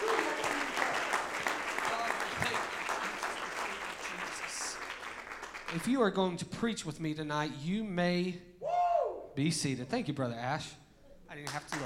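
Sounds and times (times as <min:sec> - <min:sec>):
audience shouting: 0:00.0 - 0:01.0
audience clapping: 0:00.0 - 0:06.1, 0:11.4 - 0:11.8
speech: 0:05.7 - 0:08.5, 0:09.4 - 0:11.8.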